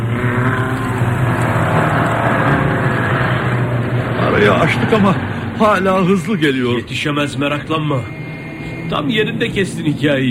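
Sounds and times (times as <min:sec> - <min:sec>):
car engine accelerating at full throttle: 0:00.0 - 0:10.2
speech: 0:04.6 - 0:08.2, 0:08.9 - 0:10.2.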